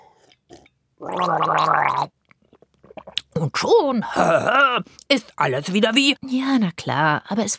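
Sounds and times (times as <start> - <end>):
person gargling a sip of water: 0.5 - 2.1, 4.1 - 4.8
speech: 1.0 - 2.2, 3.4 - 7.5.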